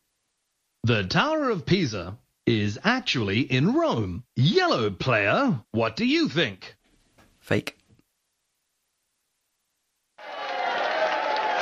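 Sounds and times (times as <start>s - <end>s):
speech: 0.9s - 6.8s, 7.4s - 7.8s
crowd booing: 10.2s - 11.5s.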